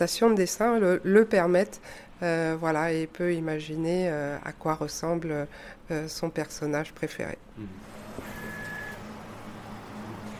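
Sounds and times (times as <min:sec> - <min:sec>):
speech: 0:00.0 - 0:08.3
braille printer printing a tactile drawing: 0:07.8 - 0:10.3.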